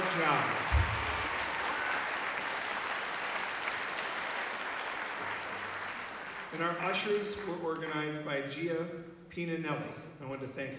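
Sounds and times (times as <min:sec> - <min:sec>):
audience applause: 0:00.0 - 0:07.5
speech: 0:00.2 - 0:00.7, 0:06.5 - 0:10.7.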